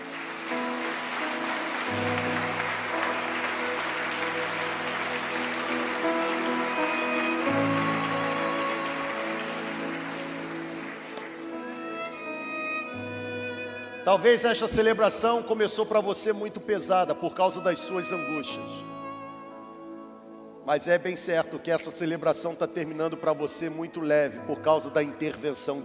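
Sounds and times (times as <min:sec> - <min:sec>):
audience clapping: 0:00.0 - 0:14.0
sustained musical notes with low bass tones: 0:00.0 - 0:20.7
speech: 0:14.1 - 0:18.9, 0:20.7 - 0:25.8.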